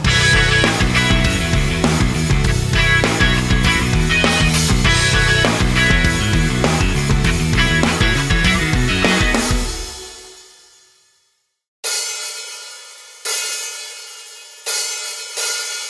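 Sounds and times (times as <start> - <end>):
karaoke singing: 0.1 - 10.2.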